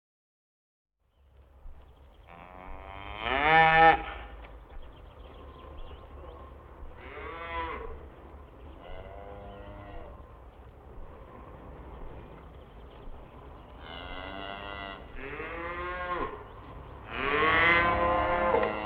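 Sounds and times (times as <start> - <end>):
low steady hum: 1.1 - 18.8
cattle mooing: 2.3 - 4.3, 7.0 - 8.1, 8.8 - 10.3, 13.8 - 18.8.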